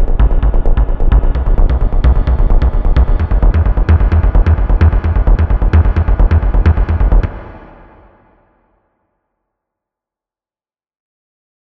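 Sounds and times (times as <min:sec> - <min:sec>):
tense action film background music: 0:00.0 - 0:08.4.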